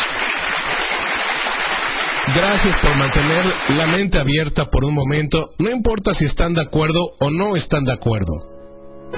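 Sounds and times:
steady applause from a crowd: 0.0s - 4.5s
speech: 2.3s - 8.6s.

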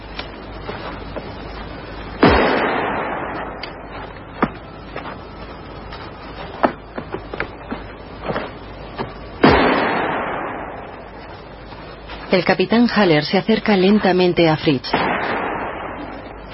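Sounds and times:
firing squad gunfire in an audio drama: 2.2s - 3.8s, 9.4s - 11.0s, 14.9s - 16.3s
pistol shots: 2.2s - 3.8s, 9.4s - 10.8s, 14.9s - 16.2s
speech: 12.4s - 15.0s.

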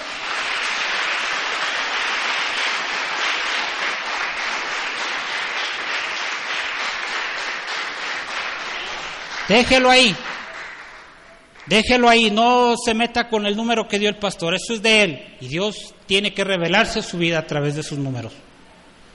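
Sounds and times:
audience applauding: 0.0s - 11.9s
speech: 9.5s - 10.3s, 11.7s - 18.5s.

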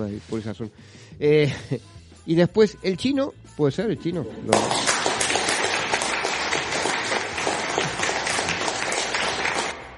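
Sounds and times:
speech: 0.0s - 5.0s
crowd applause: 4.5s - 9.9s
laughter: 7.5s - 8.8s.

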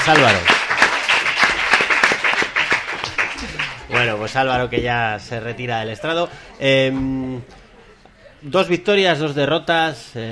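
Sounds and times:
speech: 0.0s - 0.5s, 3.9s - 7.6s, 8.4s - 10.3s
crowd applause: 0.0s - 4.5s.

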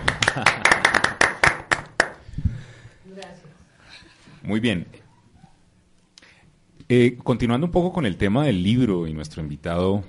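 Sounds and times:
hand claps: 0.0s - 2.2s
speech: 0.4s - 0.6s, 4.5s - 5.0s, 6.9s - 10.0s.

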